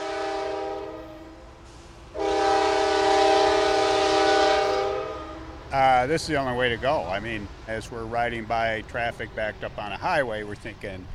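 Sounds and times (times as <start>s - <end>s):
commuter train horn: 0.0s - 5.7s
commuter train rail rumble: 0.0s - 11.1s
speech: 6.0s - 11.1s.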